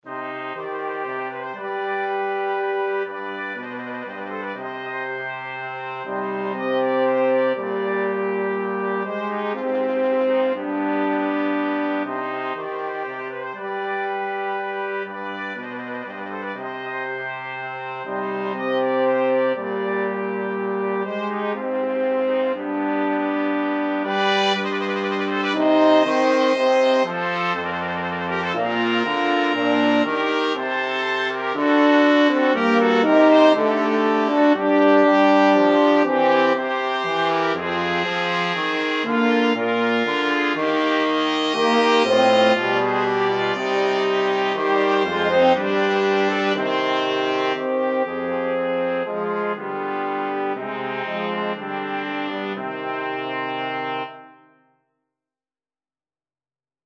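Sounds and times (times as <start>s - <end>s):
flexible mixed ensemble of 4 players: 0.1s - 54.4s.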